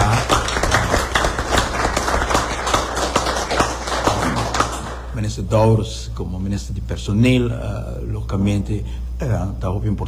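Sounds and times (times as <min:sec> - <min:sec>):
audience applause: 0:00.0 - 0:05.1
speech: 0:05.4 - 0:10.0.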